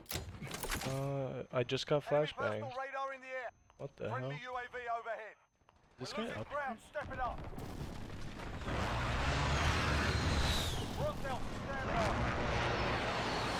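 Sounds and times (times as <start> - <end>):
speech: 0.8 - 2.9, 3.8 - 5.4, 6.0 - 8.9, 11.0 - 12.8
airstrike explosions in a shooter video game: 6.9 - 13.5.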